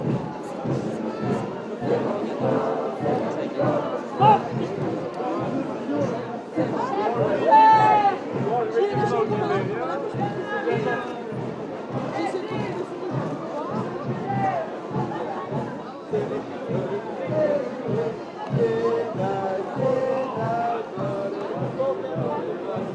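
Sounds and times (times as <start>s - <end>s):
ambience at the end of cramignons: 0.0s - 22.9s.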